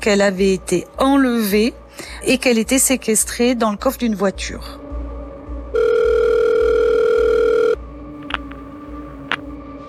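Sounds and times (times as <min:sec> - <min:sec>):
speech: 0:00.0 - 0:04.8
electronic telephone ring tone for an incoming call: 0:05.8 - 0:09.4
faint clicks: 0:08.2 - 0:09.5.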